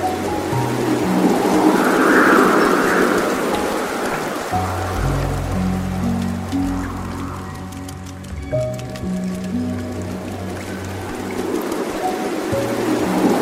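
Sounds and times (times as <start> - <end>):
slow soft relaxing piano music: 0.0 - 13.4
soft water stream flowing: 0.0 - 13.4.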